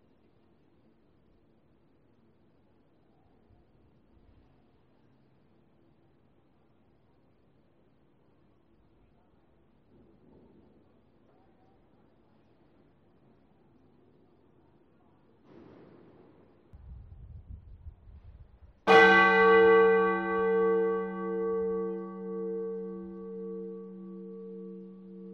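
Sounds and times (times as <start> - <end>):
bell: 18.9 - 25.3.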